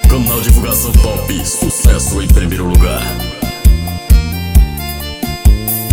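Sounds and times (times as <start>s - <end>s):
remix music: 0.1s - 5.8s.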